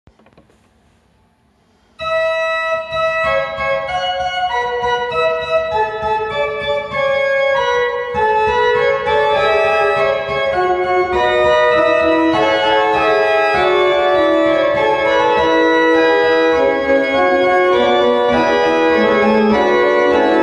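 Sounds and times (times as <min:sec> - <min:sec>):
prelude and fugue in A major: 0:02.0 - 0:20.4.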